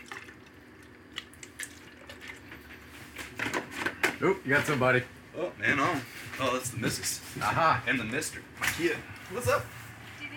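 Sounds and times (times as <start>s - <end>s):
milk pouring into a container: 0.0s - 2.9s
speech: 4.2s - 9.8s.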